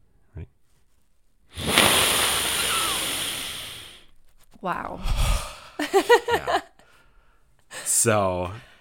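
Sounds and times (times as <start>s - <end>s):
person sniffing a book: 1.5s - 4.1s, 5.0s - 5.7s
speech: 4.6s - 6.7s, 8.0s - 8.7s.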